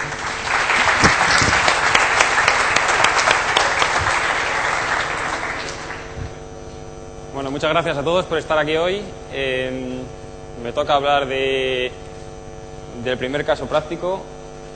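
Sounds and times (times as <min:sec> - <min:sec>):
audience applause: 0:00.0 - 0:06.3
speech: 0:07.6 - 0:12.0, 0:13.0 - 0:14.4.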